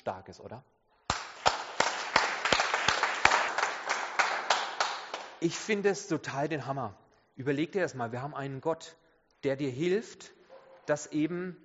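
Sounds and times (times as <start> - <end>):
speech: 0.0 - 0.8, 5.4 - 11.6
sharp evenly spaced claps: 1.0 - 5.8
crowd applauding: 1.1 - 5.4.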